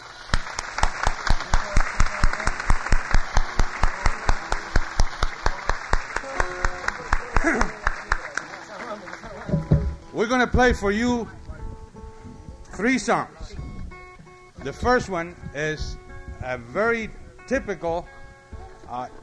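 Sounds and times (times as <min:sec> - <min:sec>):
audience clapping: 0:00.0 - 0:11.0
speech: 0:10.2 - 0:11.4, 0:12.8 - 0:13.4, 0:14.6 - 0:18.2, 0:18.9 - 0:19.2.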